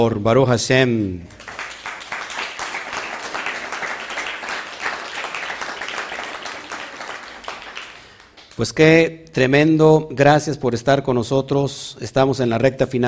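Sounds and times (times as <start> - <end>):
speech: 0.0 - 1.5, 8.6 - 13.0
audience applause: 1.3 - 8.6.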